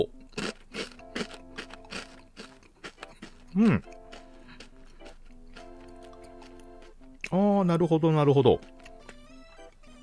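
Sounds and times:
crunching crispy potato snack sticks: 0.0s - 7.4s, 8.3s - 10.0s
speech: 3.6s - 4.0s, 7.6s - 8.8s.

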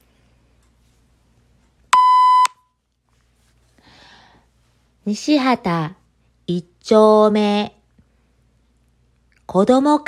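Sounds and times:
electronic beep from a neighbourhood PA system: 2.0s - 2.6s
speech: 5.0s - 7.8s, 9.5s - 10.0s.

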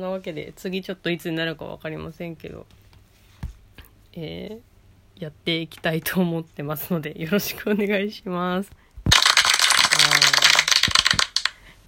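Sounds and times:
speech: 0.0s - 2.8s, 4.2s - 8.8s
one person clapping their own hands: 9.1s - 11.6s.

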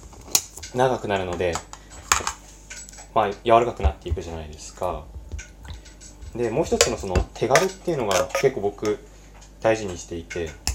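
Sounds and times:
speech: 0.7s - 1.7s, 3.2s - 5.2s, 6.3s - 10.6s
opening a can of tomatoes: 7.5s - 8.6s.

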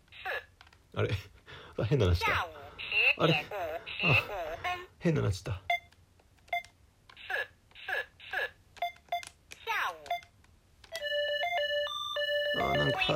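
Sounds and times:
speech: 1.0s - 2.5s, 3.2s - 5.7s, 12.8s - 13.1s
synthetic Chinese calculator speech: 2.0s - 4.9s, 7.2s - 8.6s, 9.6s - 10.1s, 12.6s - 13.1s
talking calculator electronic beeps: 5.7s - 6.8s, 8.3s - 13.1s
beeping electronic melody: 11.0s - 13.1s.

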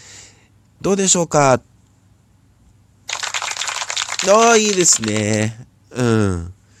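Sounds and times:
speech: 0.8s - 1.7s, 4.3s - 6.6s
applause sound effect: 3.1s - 5.6s.

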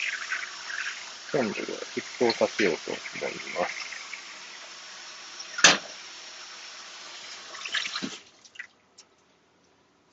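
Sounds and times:
water being poured into a kettle: 0.0s - 8.7s
speech: 1.3s - 3.9s
sharp clank: 5.6s - 5.9s.

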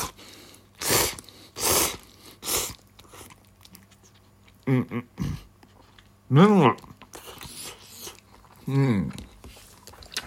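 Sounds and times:
chewing and slurping miso ramen noodles: 0.0s - 4.6s, 6.8s - 10.2s
person humming: 4.6s - 5.4s
speech: 4.7s - 5.4s, 6.3s - 6.9s, 8.7s - 9.2s.

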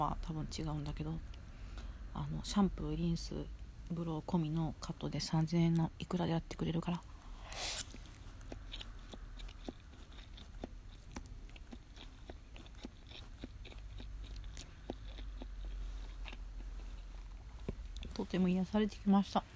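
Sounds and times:
speech: 0.0s - 1.4s, 2.2s - 7.8s, 18.4s - 19.5s
person chewing tarako cod roe pasta: 6.9s - 18.4s.

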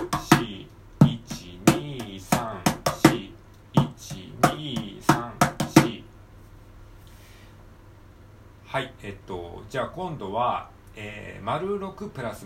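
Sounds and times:
mini cajon drum fill-in being played: 0.0s - 6.1s
speech: 8.8s - 12.4s.

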